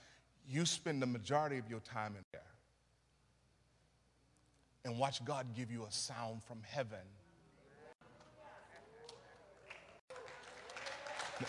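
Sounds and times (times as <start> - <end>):
speech: 0.5 - 2.6, 4.8 - 7.2
audience clapping: 8.0 - 11.4.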